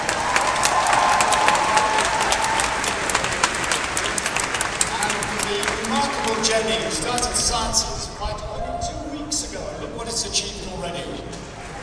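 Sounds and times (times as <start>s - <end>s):
audience applause: 0.0s - 7.4s
murmur of voices: 2.8s - 11.8s
speech: 6.5s - 8.0s.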